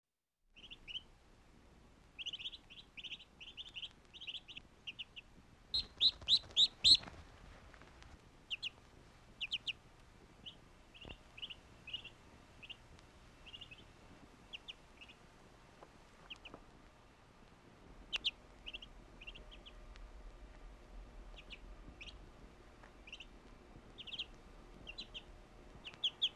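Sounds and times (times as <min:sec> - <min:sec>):
bird chirping in bright high runs: 0:00.6 - 0:01.1, 0:02.2 - 0:07.2, 0:08.5 - 0:08.8, 0:09.4 - 0:09.8, 0:10.4 - 0:13.9, 0:14.5 - 0:15.2, 0:16.2 - 0:16.6, 0:18.1 - 0:19.8, 0:21.3 - 0:22.2, 0:23.0 - 0:23.3, 0:24.0 - 0:26.3.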